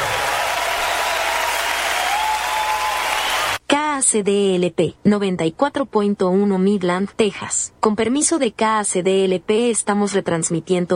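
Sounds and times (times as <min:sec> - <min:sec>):
audience applause: 0:00.0 - 0:03.6
speech: 0:04.1 - 0:10.9.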